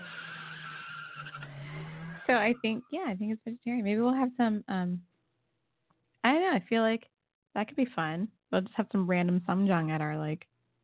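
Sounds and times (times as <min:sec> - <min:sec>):
tires squealing from a car racing around outside: 0:00.0 - 0:02.9
speech: 0:02.3 - 0:05.1, 0:06.2 - 0:10.5.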